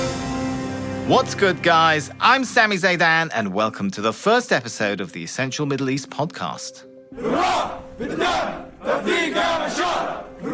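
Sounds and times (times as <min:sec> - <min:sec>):
speech: 0:01.1 - 0:10.5
Syrian fighters lined up to enroll chanting together: 0:07.1 - 0:10.5.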